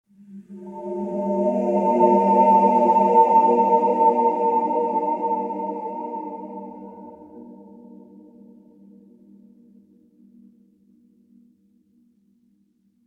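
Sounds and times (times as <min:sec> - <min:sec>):
field background music: 0:00.2 - 0:08.0.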